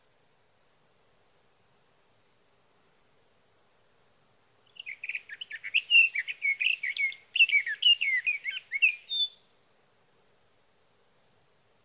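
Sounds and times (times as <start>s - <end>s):
sage thrasher song: 4.7s - 9.4s.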